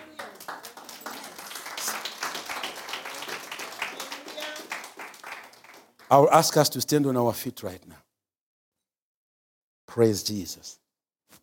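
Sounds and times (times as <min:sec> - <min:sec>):
audience clapping hands: 0:00.0 - 0:06.5
speech: 0:06.1 - 0:08.0, 0:10.0 - 0:10.8.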